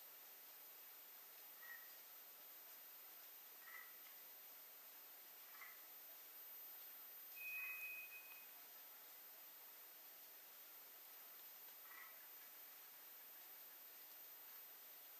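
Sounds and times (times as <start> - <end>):
steady background hiss: 0.0 - 15.1
White's thrush song: 7.4 - 8.5.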